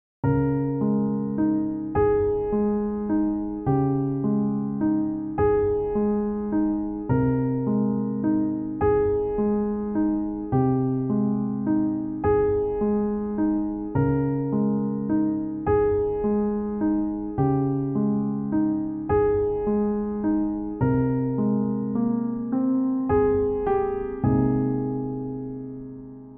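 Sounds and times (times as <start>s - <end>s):
emotional new age music: 0.3s - 26.3s.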